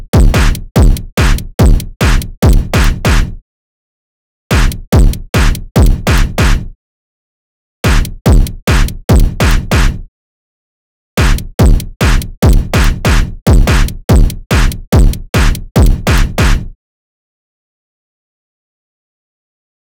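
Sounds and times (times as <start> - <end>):
drums: 0.0 - 3.4, 4.5 - 6.7, 7.8 - 10.0, 11.2 - 16.7.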